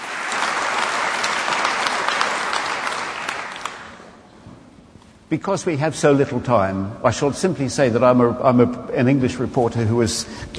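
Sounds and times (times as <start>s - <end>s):
audience applause welcoming two speakers: 0.0s - 4.2s
speech: 5.3s - 10.5s.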